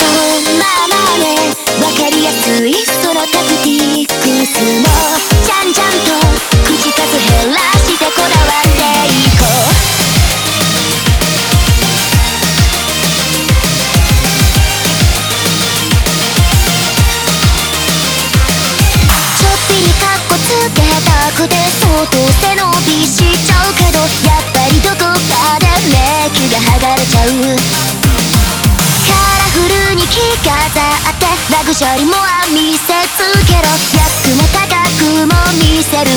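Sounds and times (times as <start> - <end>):
background music: 0.0 - 36.1.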